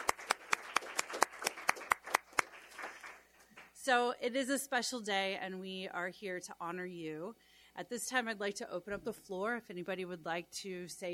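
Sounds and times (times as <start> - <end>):
audience applause: 0.0 - 3.7
speech: 3.9 - 11.1.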